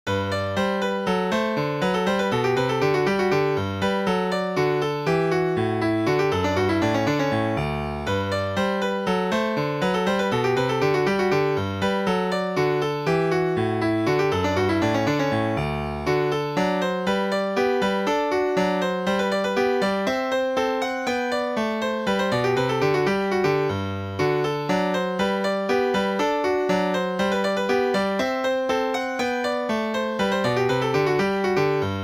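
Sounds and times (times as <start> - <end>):
allegretto scherzando classical piece: 0.8 - 32.0.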